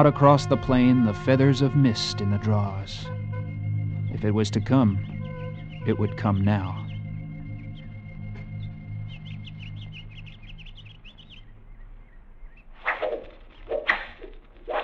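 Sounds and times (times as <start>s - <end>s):
speech: 0.0s - 3.2s, 4.1s - 5.1s, 5.8s - 6.8s
birds chirping: 0.0s - 14.8s
arrows whizzing and thudding: 12.8s - 14.8s.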